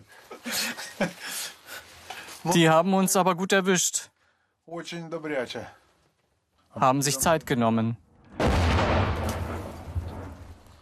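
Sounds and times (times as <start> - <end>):
laughter: 0.3 - 1.6
speech: 1.0 - 1.3, 2.4 - 4.1, 4.7 - 5.8, 6.8 - 8.0
heavy gunfire: 8.4 - 10.6.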